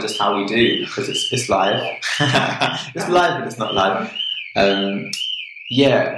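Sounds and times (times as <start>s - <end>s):
laughter: 0.0s - 5.0s
car alarm going off outside: 0.0s - 6.1s
speech: 0.0s - 6.1s.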